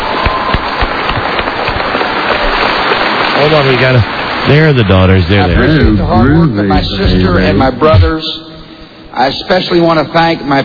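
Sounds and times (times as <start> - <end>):
audience applause: 0.0 - 5.4
speech: 3.4 - 8.5, 9.2 - 10.6.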